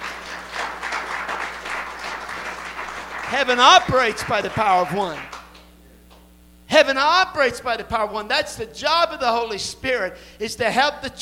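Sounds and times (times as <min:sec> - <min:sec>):
audience clapping hands: 0:00.0 - 0:05.7
speech: 0:03.3 - 0:05.3, 0:06.8 - 0:11.2.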